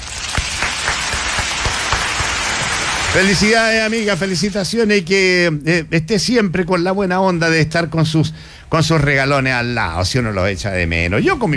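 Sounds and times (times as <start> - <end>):
applause in congratulation to a caller: 0.0 - 4.1
wash of noise: 0.0 - 5.1
speech: 3.1 - 11.5.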